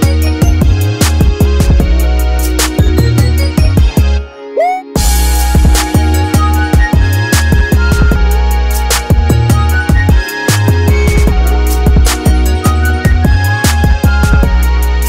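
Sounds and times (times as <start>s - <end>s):
instrumental rap type beat: 0.0s - 15.0s.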